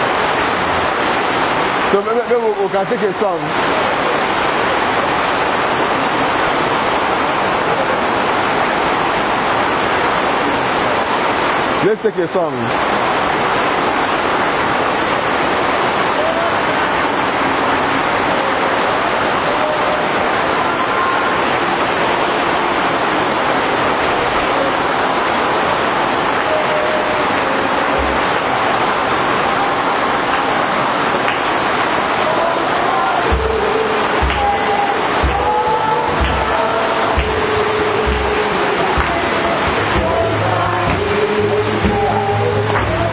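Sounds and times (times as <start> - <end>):
heavy rain: 0.0 - 43.1
speech: 1.9 - 4.0, 11.8 - 13.0.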